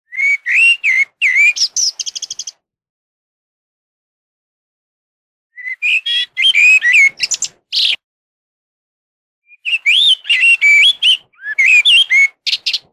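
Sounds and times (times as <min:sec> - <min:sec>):
blackbird singing: 0:00.1 - 0:02.6, 0:05.6 - 0:08.0, 0:09.5 - 0:12.9.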